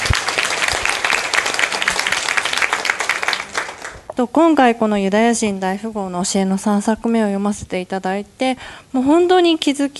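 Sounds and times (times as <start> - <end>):
audience applause: 0.0 - 4.1
speech: 4.2 - 9.9.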